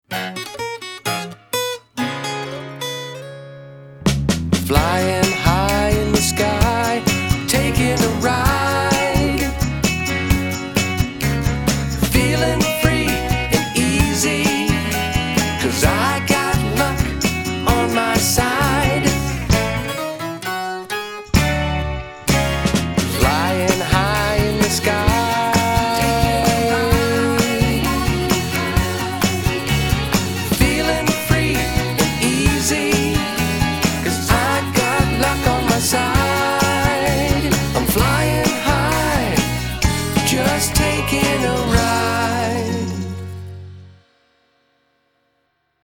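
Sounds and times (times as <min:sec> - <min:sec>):
music: 0:00.0 - 0:45.8
vocals: 0:04.6 - 0:19.8, 0:23.0 - 0:43.6.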